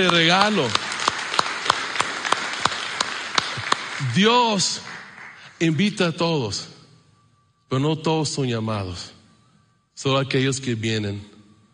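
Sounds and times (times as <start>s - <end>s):
speech: 0.0s - 0.9s, 4.0s - 4.9s, 5.6s - 6.7s, 7.7s - 9.2s, 10.0s - 11.3s
audience applause: 0.0s - 5.6s.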